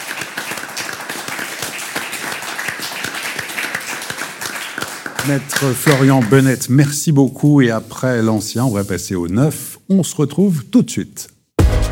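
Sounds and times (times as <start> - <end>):
crowd applauding: 0.0 - 6.5
speech: 5.2 - 11.3.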